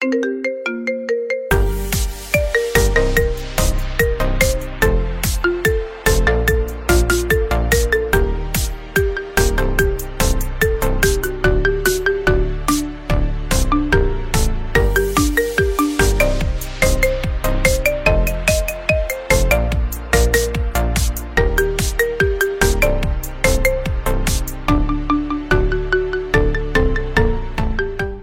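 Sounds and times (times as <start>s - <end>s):
marimba remix: 0.0s - 28.2s.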